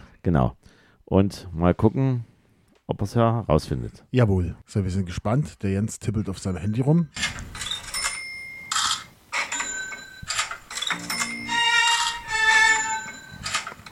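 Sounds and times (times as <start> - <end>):
speech: 0.2 - 2.3, 2.9 - 7.6
cash register ka-ching: 7.6 - 13.8.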